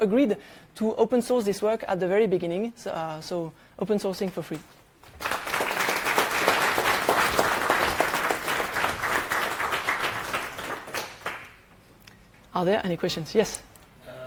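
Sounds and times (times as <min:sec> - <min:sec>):
speech: 0:00.0 - 0:05.4, 0:12.6 - 0:13.7
audience applause: 0:05.0 - 0:11.6.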